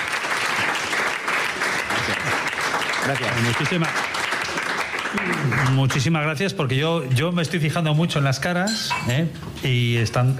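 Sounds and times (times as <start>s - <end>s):
audience applause: 0.0s - 6.1s
speech: 3.1s - 4.1s, 5.1s - 10.3s.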